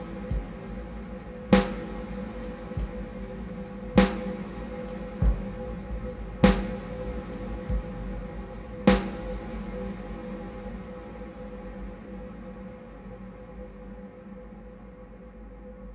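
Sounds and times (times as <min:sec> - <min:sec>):
VST synthesized drums: 0:00.0 - 0:10.2.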